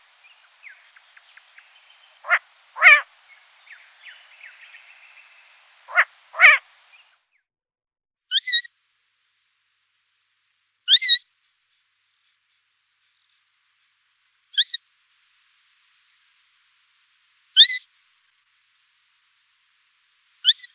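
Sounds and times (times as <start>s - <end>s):
Long-eared owl high squeaky calls: 2.2s - 3.0s, 5.9s - 6.6s, 8.3s - 8.7s, 10.8s - 11.2s, 14.5s - 14.8s, 17.6s - 17.8s, 20.4s - 20.7s.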